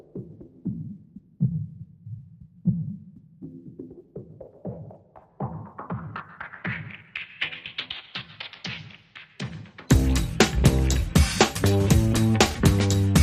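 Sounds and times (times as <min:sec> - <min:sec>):
drums: 0:00.0 - 0:13.2
bass: 0:09.9 - 0:13.2.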